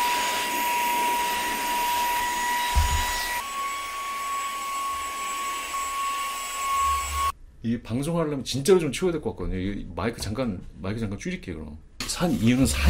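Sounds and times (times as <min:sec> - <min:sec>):
electric keyboard cleaner blower running: 0:00.0 - 0:07.3
speech: 0:07.6 - 0:12.8.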